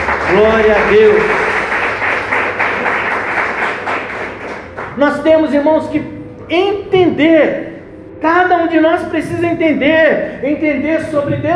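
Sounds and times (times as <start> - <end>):
audience clapping: 0.0 - 5.5
speech: 0.3 - 1.4, 5.0 - 11.5.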